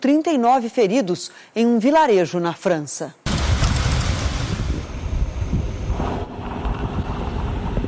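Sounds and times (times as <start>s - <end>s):
speech: 0.0s - 3.3s
tornado storm winds approaching: 3.3s - 7.8s.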